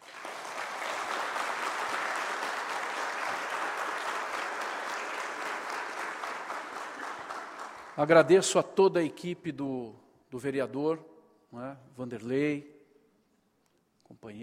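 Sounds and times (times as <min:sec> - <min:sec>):
audience applause: 0:00.0 - 0:08.2
speech: 0:08.0 - 0:12.7, 0:14.1 - 0:14.4.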